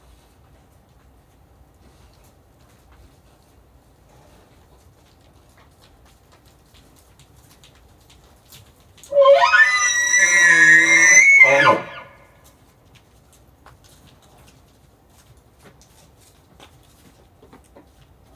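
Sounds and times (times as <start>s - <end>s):
bull elk bugling: 9.1s - 12.2s.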